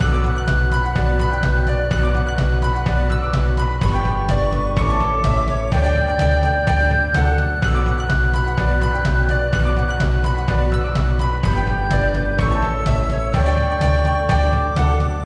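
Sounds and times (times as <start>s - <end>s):
big win music loop: 0.0s - 15.2s.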